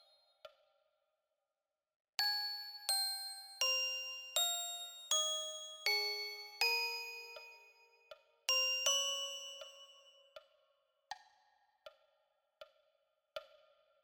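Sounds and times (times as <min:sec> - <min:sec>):
glockenspiel: 0:02.2 - 0:10.5.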